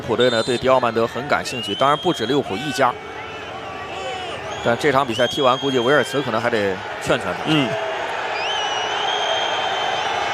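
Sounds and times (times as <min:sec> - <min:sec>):
speech: 0:00.0 - 0:03.1, 0:04.6 - 0:07.9
German football fans booing in a stadium during a World Cup match: 0:01.4 - 0:10.3
football fans whistling: 0:01.5 - 0:06.4, 0:08.4 - 0:10.3.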